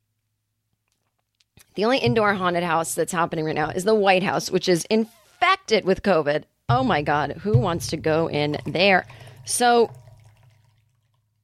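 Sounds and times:
speech: 0:01.7 - 0:10.0
hot coffee pouring from a carafe: 0:07.0 - 0:11.4.

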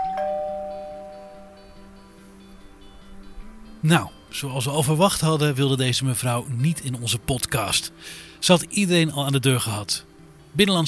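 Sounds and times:
doorbell chime: 0:00.0 - 0:01.9
speech: 0:03.8 - 0:10.8.

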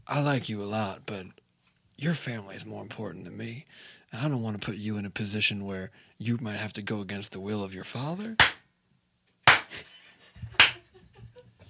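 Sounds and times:
speech: 0:00.1 - 0:01.4, 0:02.0 - 0:08.5
robotic steel arm clapping: 0:08.4 - 0:08.6.

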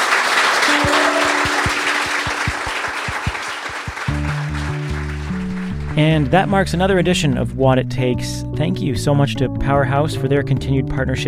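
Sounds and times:
crowd applauding: 0:00.0 - 0:06.6
music with a regular thumping beat and sustained chords: 0:02.5 - 0:05.1
speech: 0:06.0 - 0:11.2.

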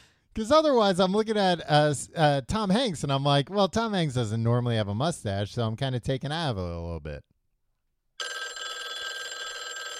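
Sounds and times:
speech: 0:00.4 - 0:07.3
telephone bell ringing: 0:08.2 - 0:09.9.

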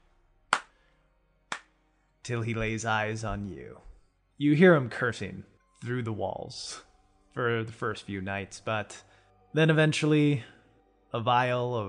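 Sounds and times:
hand clapping: 0:00.5 - 0:00.8, 0:01.5 - 0:01.8
speech: 0:02.3 - 0:11.8.

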